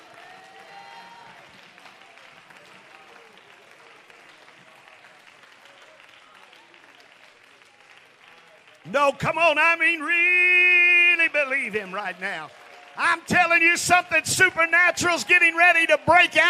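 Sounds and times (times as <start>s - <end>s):
audience clapping: 0.0s - 16.4s
speech: 8.9s - 10.5s, 11.4s - 16.4s.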